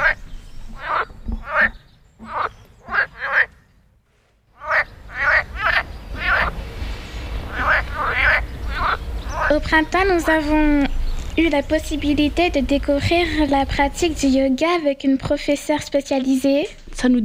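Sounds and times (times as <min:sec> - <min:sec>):
frogs croaking in spring: 0:00.0 - 0:03.7, 0:04.5 - 0:06.6, 0:07.3 - 0:12.0
speech: 0:09.6 - 0:17.2.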